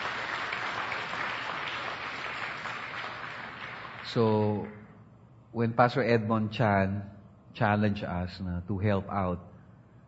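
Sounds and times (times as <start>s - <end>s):
church congregation applause praising God: 0.0s - 4.2s
speech: 4.1s - 4.8s, 5.5s - 9.5s.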